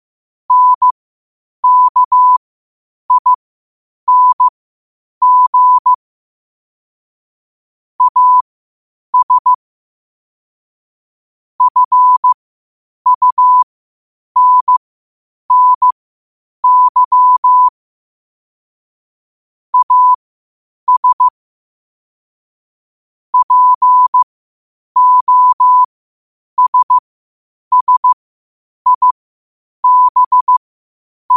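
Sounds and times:
morse code at 5 wpm: 0.5s - 1.0s, 1.6s - 2.4s, 3.1s - 3.4s, 4.1s - 4.5s, 5.2s - 6.0s, 8.0s - 8.4s, 9.2s - 9.6s, 11.6s - 12.4s, 13.1s - 13.6s, 14.4s - 14.8s, 15.5s - 16.0s, 16.6s - 17.7s, 19.8s - 20.2s, 20.9s - 21.3s, 23.4s - 24.2s, 25.0s - 25.9s, 26.6s - 27.0s, 27.7s - 28.2s, 28.9s - 29.2s, 29.8s - 30.6s.

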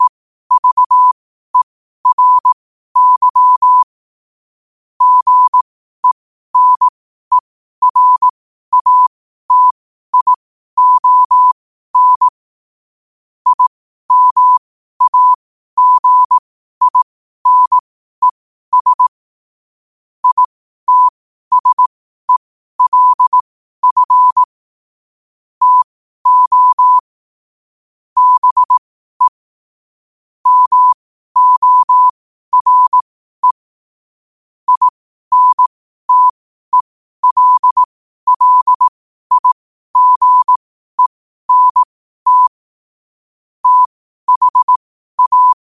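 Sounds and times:
morse code at 5 wpm: 0.0s - 3.9s, 5.0s - 12.4s, 13.5s - 19.2s, 20.2s - 24.5s, 25.6s - 27.1s, 28.2s - 29.4s, 30.4s - 33.6s, 34.7s - 42.6s, 43.6s - 45.7s.

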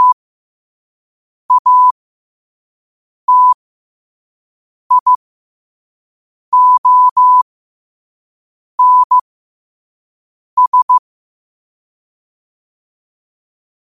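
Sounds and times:
morse code at 5 wpm: 1.5s - 1.9s, 3.3s - 3.6s, 4.9s - 5.2s, 6.6s - 7.4s, 8.8s - 9.2s, 10.6s - 11.0s.

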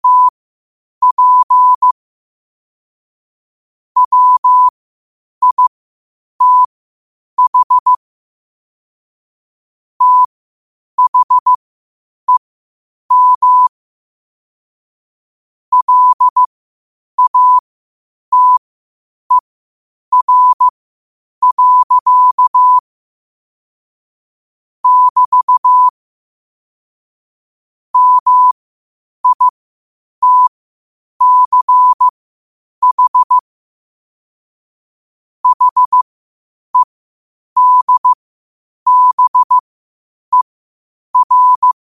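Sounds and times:
morse code at 5 wpm: 0.0s - 0.3s, 1.0s - 2.0s, 4.0s - 4.7s, 5.4s - 5.7s, 6.4s - 6.7s, 7.4s - 8.0s, 10.0s - 10.3s, 11.0s - 11.6s, 13.1s - 13.7s, 15.7s - 16.5s, 17.2s - 17.6s, 18.3s - 18.6s, 20.1s - 20.7s, 21.4s - 22.8s, 24.8s - 25.9s, 28.0s - 28.6s, 29.2s - 29.5s, 30.2s - 30.5s, 31.2s - 32.1s, 32.8s - 33.4s, 35.4s - 36.1s, 37.6s - 38.2s, 38.9s - 39.6s, 41.2s - 41.8s.

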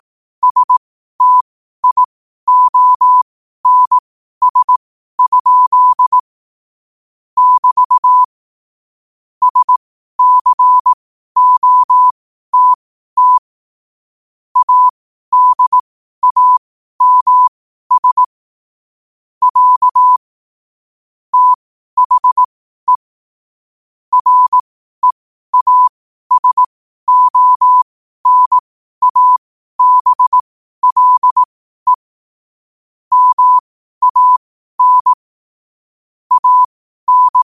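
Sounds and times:
morse code at 5 wpm: 0.4s - 6.2s, 7.4s - 8.3s, 9.4s - 13.4s, 14.6s - 18.3s, 19.4s - 20.2s, 21.3s - 23.0s, 24.1s - 32.1s, 33.1s - 35.3s, 36.3s - 37.4s.

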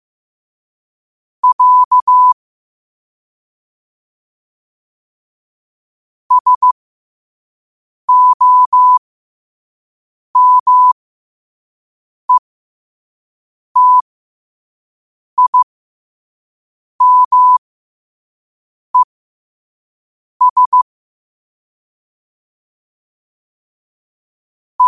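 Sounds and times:
morse code at 5 wpm: 1.4s - 2.4s, 6.3s - 6.8s, 8.1s - 9.0s, 10.4s - 11.0s, 13.8s - 14.0s, 15.4s - 15.6s, 17.0s - 17.6s, 20.4s - 20.9s.

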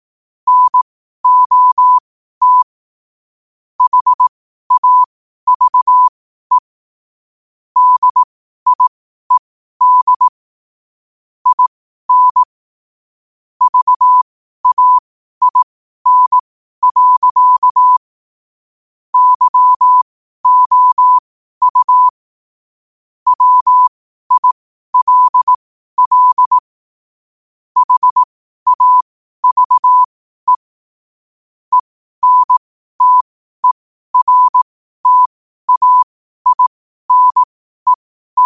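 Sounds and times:
morse code at 5 wpm: 0.5s - 2.7s, 3.8s - 6.6s, 7.8s - 8.9s, 9.8s - 10.3s, 11.4s - 12.5s, 13.6s - 18.0s, 19.2s - 22.2s, 23.3s - 26.7s, 27.8s - 30.7s, 31.7s - 38.4s.

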